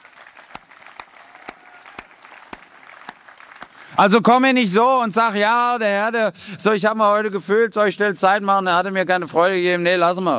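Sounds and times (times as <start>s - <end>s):
sharp louder rhythmic claps: 0.0s - 4.1s
audience applause: 0.0s - 4.4s
speech: 4.0s - 10.3s.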